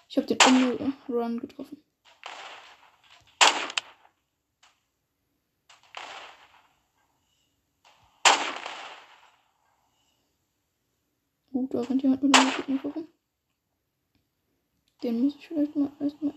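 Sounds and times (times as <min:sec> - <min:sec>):
speech: 0:00.1 - 0:01.9, 0:11.6 - 0:13.2, 0:15.0 - 0:16.3
short gunfire bursts: 0:00.3 - 0:01.1, 0:02.0 - 0:04.1, 0:05.7 - 0:06.8, 0:07.9 - 0:09.5, 0:12.2 - 0:13.0
sniper rifle gunfire in a video game: 0:00.3 - 0:01.1, 0:02.0 - 0:04.1, 0:05.7 - 0:06.9, 0:07.8 - 0:09.6, 0:12.2 - 0:13.0.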